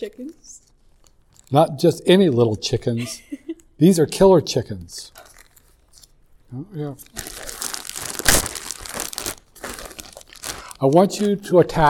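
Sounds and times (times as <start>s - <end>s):
speech: 0.0s - 0.7s, 1.5s - 5.3s, 6.5s - 7.4s, 10.8s - 11.8s
snack bag crinkling: 5.1s - 6.1s, 7.0s - 11.4s.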